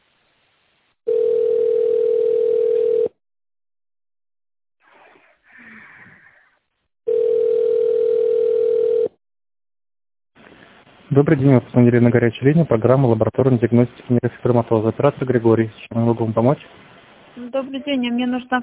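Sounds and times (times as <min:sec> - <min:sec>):
telephone ringback tone: 0:01.1 - 0:03.2, 0:07.1 - 0:09.2
speech: 0:11.2 - 0:16.8, 0:17.4 - 0:18.6.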